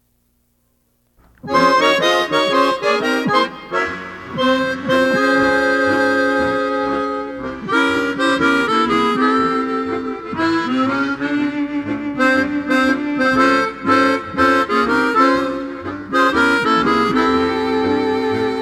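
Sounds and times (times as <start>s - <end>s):
harmonica: 1.3s - 18.6s.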